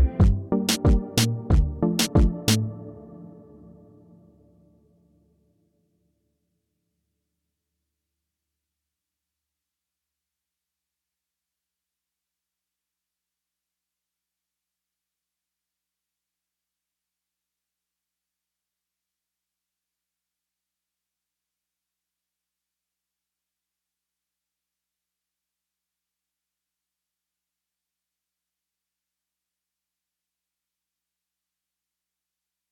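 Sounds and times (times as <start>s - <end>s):
reggaeton beat: 0.2s - 2.7s.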